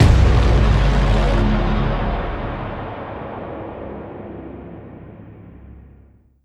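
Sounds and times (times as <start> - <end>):
impact: 0.0 - 5.9.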